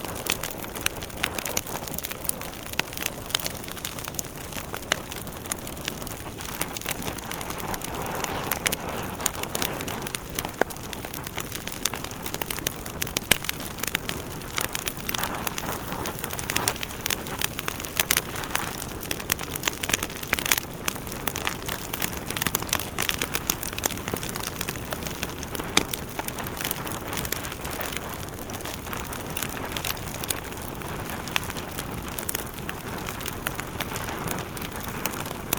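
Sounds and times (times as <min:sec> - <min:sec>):
fireplace fire foley ambience: 0:00.0 - 0:35.5.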